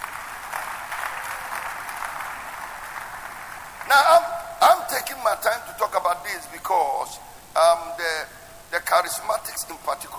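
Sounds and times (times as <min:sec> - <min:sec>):
audience clapping: 0:00.0 - 0:04.5
speech: 0:03.9 - 0:10.1.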